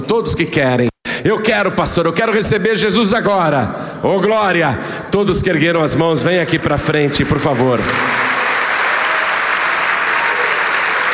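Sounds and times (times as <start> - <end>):
speech: 0.0 - 8.3
church congregation applauding the name of Jesus during a service: 7.0 - 11.1.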